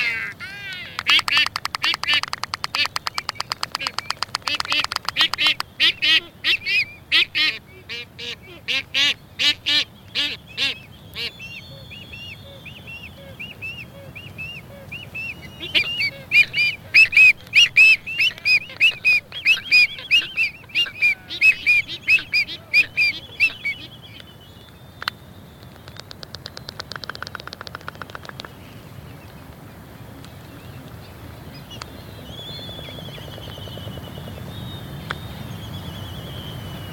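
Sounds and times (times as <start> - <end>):
albatross giving harsh braying calls: 0.0 - 24.1.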